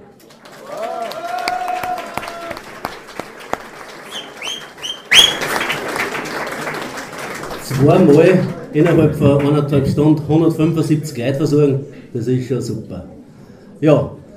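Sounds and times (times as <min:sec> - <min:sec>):
audience applause: 0:00.0 - 0:09.6
speech: 0:07.8 - 0:13.2, 0:13.8 - 0:14.2.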